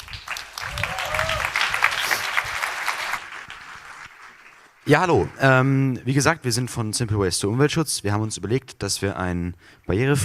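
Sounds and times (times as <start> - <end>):
audience applause: 0.0 - 5.6
speech: 4.9 - 10.2.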